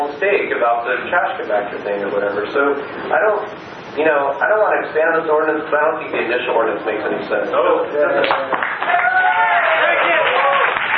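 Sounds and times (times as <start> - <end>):
speech: 0.2 - 9.0
audience applause at council meeting: 8.5 - 10.9
audience voices cheering at council meeting: 8.8 - 10.9.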